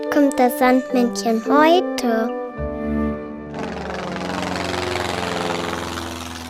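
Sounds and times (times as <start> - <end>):
speech: 0.1 - 1.8
airplane engine: 3.0 - 6.4.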